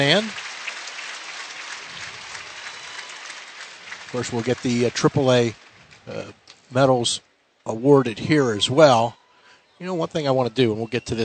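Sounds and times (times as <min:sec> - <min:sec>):
speech: 0:00.0 - 0:00.4, 0:04.1 - 0:09.2, 0:09.8 - 0:11.2
crowd applause: 0:00.0 - 0:07.0.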